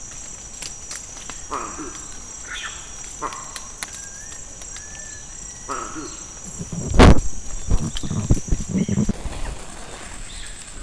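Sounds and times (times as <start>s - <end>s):
male eagle attack vocalisations: 1.3s - 9.2s.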